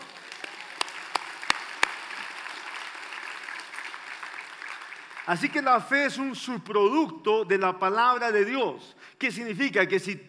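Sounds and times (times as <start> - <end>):
audience applause: 0.0 - 5.7
speech: 5.3 - 10.2.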